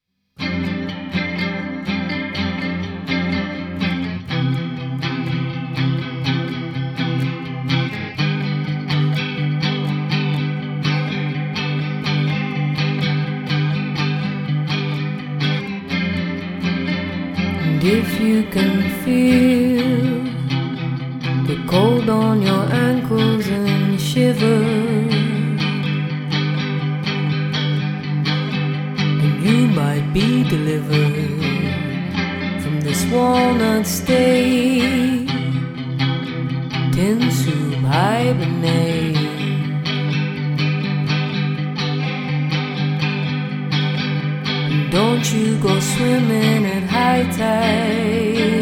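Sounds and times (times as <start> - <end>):
acoustic music: 0.4 - 48.6.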